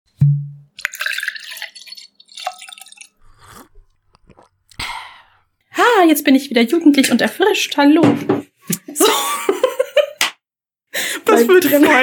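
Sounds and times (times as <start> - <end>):
person sipping and swallowing coffee: 0.8 - 5.6
short breathy exhale: 4.8 - 5.5
speech: 6.0 - 8.5, 11.4 - 12.0
laughter: 9.0 - 10.2.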